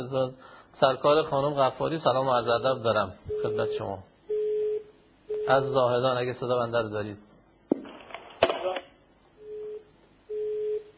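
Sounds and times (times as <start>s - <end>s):
speech: 0.0s - 4.1s, 5.5s - 7.3s
steady mid-pitched phone line disconnect tone: 3.3s - 5.8s, 9.4s - 10.9s.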